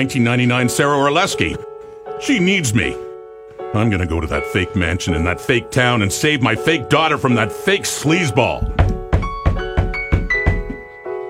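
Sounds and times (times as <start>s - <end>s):
speech: 0.0s - 3.1s, 3.7s - 8.9s
knock on the studio door: 8.6s - 10.8s.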